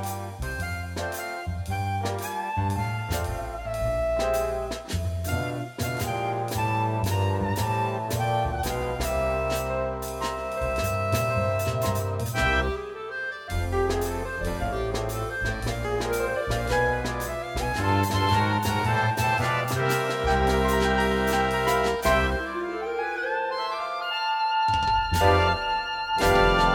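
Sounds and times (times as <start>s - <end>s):
clarinet playing jazz: 0.0s - 26.7s.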